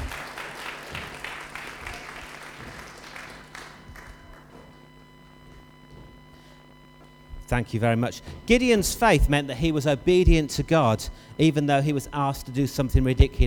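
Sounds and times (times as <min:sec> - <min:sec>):
audience applause: 0:00.0 - 0:04.6
speech: 0:07.5 - 0:13.4.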